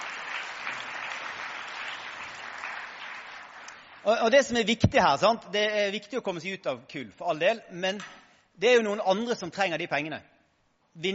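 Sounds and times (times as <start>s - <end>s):
applause: 0.0s - 4.6s
speech: 4.0s - 10.3s, 11.0s - 11.1s.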